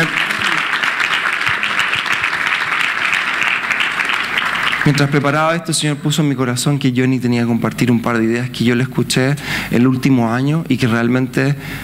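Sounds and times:
audience applauding: 0.0 - 5.6
speech: 4.9 - 11.8.

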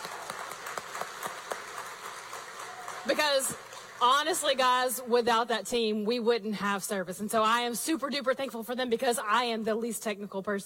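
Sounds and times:
crowd applauding: 0.0 - 4.5
speech: 3.1 - 10.6.

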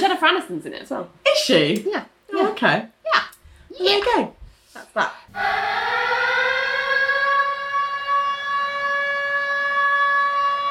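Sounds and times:
speech: 0.2 - 3.2, 3.8 - 6.1
loud alarm siren wailing: 5.3 - 10.7.

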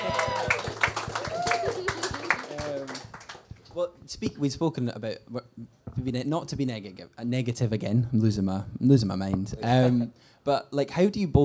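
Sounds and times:
audience applause: 0.0 - 3.7
speech: 3.8 - 11.4.

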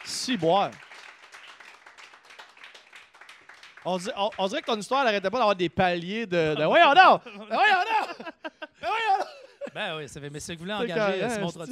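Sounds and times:
clapping: 0.0 - 5.4
speech: 0.2 - 0.8, 3.8 - 9.0, 9.8 - 11.7
laughter: 6.6 - 10.0.

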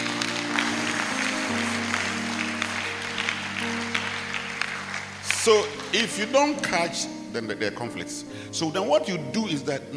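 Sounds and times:
crowd clapping: 0.0 - 6.8
speech: 5.4 - 9.9.

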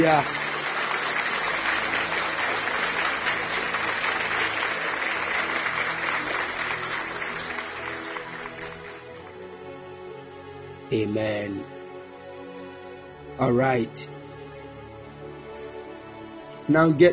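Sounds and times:
speech: 0.0 - 0.4, 10.9 - 11.8, 13.4 - 14.2, 16.7 - 17.1
audience clapping in praise: 0.0 - 9.5.

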